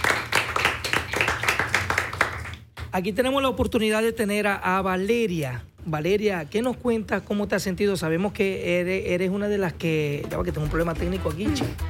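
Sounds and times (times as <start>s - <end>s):
crowd applauding for a gaita music group: 0.0s - 2.8s
speech: 2.9s - 11.8s.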